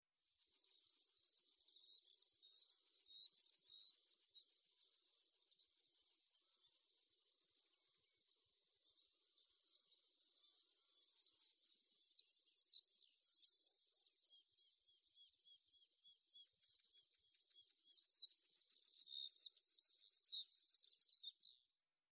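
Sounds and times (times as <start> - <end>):
faint high twittering: 0.2 - 21.9
common blackbird calls: 1.2 - 4.0, 4.7 - 5.3, 10.2 - 14.7, 18.8 - 21.4.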